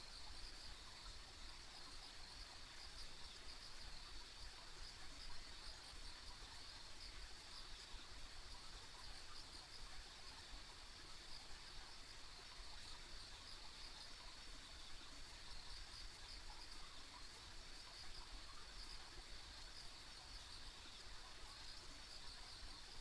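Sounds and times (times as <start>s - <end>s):
steady high insect chorus: 0.0s - 22.9s.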